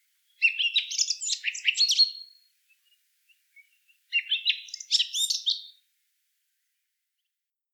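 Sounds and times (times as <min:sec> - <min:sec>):
Eurasian blackcap warbling song: 0:00.4 - 0:02.2, 0:04.1 - 0:05.7.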